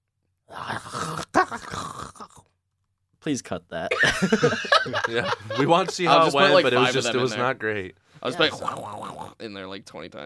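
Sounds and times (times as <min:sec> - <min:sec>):
person imitating zombie groans: 0:00.5 - 0:02.4
speech: 0:03.2 - 0:10.2
laughter: 0:03.9 - 0:07.5.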